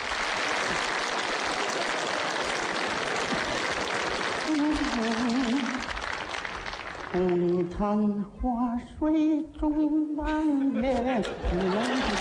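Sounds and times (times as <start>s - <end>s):
audience applause: 0.0s - 7.6s, 11.6s - 12.2s
speech: 7.2s - 12.2s
laughter: 10.7s - 12.2s.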